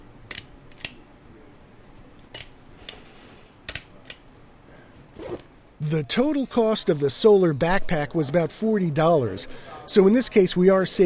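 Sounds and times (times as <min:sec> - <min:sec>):
stapler driving staples through a solar panel into a soft backpack: 0:00.3 - 0:01.0
speech: 0:05.8 - 0:11.0.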